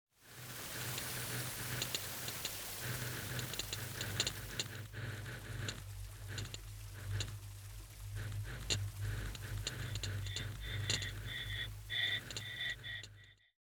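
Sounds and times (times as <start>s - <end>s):
fire: 0.2s - 12.8s
time clicks: 9.6s - 13.2s.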